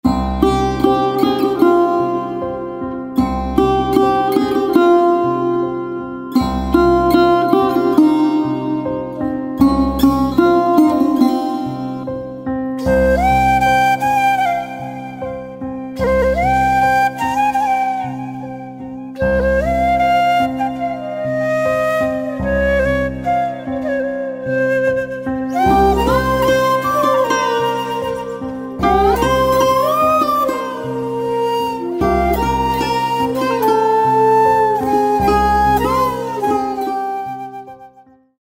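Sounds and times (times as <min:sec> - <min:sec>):
flute: 0:00.0 - 0:38.4
veena: 0:00.0 - 0:38.4.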